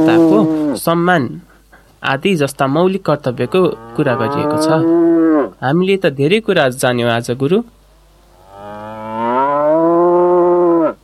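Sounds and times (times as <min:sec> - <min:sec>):
cattle lowing in a long loud moo: 0:00.0 - 0:00.8, 0:03.4 - 0:05.6, 0:08.4 - 0:11.0
speech: 0:00.0 - 0:07.8.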